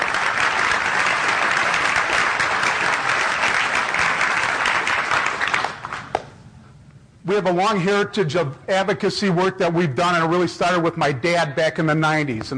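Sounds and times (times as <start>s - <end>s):
crowd applauding: 0.0s - 6.2s
speech: 7.3s - 12.5s.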